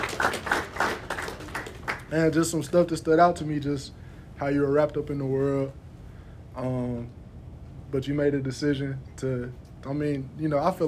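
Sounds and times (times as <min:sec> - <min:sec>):
clapping: 0:00.0 - 0:02.2
speech: 0:02.1 - 0:05.8, 0:06.6 - 0:07.2, 0:07.9 - 0:10.8.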